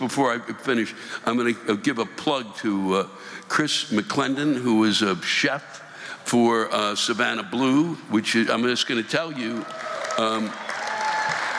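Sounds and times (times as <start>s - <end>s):
speech: 0.0s - 10.7s
audience applause: 9.5s - 11.5s.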